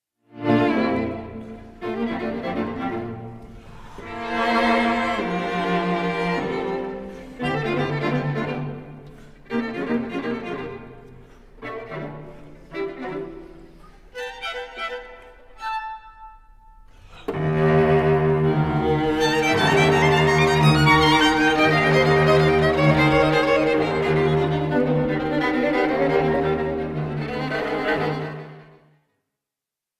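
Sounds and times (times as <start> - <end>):
string quartet in D major: 0.3 - 28.8.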